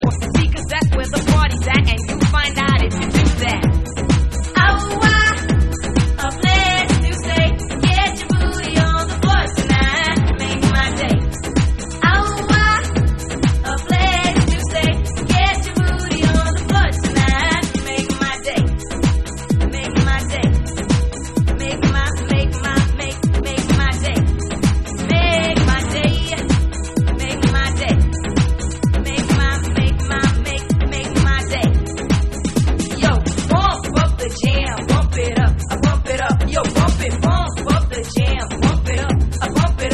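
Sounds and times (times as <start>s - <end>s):
vocals: 0.0s - 39.9s.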